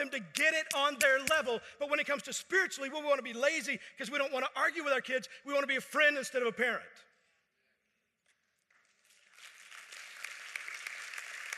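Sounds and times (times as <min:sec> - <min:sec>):
speech: 0:00.0 - 0:07.1
audience clapping: 0:08.6 - 0:11.5.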